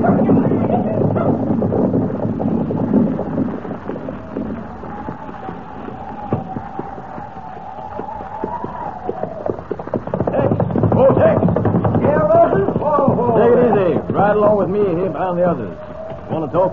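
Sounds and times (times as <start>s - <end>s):
horses' hooves clip-clopping: 0.0s - 16.7s
indistinct voices: 0.0s - 16.7s
speech: 16.6s - 16.7s.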